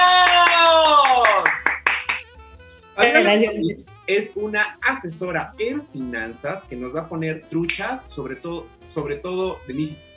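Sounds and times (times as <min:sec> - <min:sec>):
person cheering: 0:00.0 - 0:02.2, 0:03.0 - 0:05.0
sharp claps: 0:00.0 - 0:02.3, 0:07.6 - 0:08.1
speech: 0:03.2 - 0:10.1.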